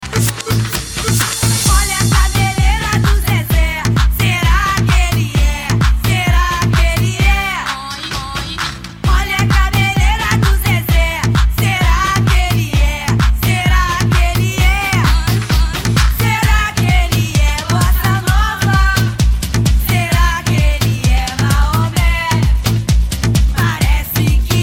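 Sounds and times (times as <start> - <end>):
carnival sound car music: 0.0 - 24.6.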